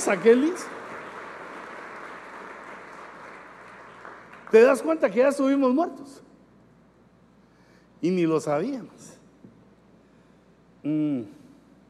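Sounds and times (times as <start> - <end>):
speech: 0.0 - 0.8, 4.5 - 6.3, 8.0 - 9.2, 10.8 - 11.4
crowd applauding: 0.0 - 5.0.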